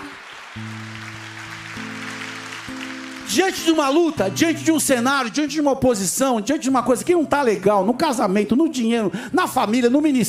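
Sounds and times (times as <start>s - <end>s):
audience applause: 0.0s - 5.5s
speech: 0.6s - 0.9s, 3.3s - 10.2s.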